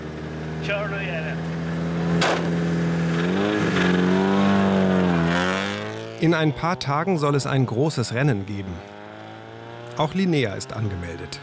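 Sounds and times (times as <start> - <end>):
rattling old car engine drone: 0.0 - 11.4
speech: 0.6 - 1.6, 2.2 - 2.8, 6.2 - 8.9, 10.0 - 11.4
sharp clunk: 2.1 - 2.6.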